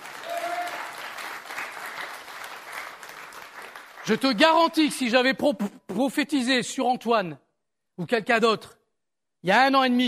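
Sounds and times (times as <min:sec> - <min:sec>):
audience applauding: 0:00.0 - 0:04.8
speech: 0:04.0 - 0:07.4, 0:08.0 - 0:08.8, 0:09.4 - 0:10.0.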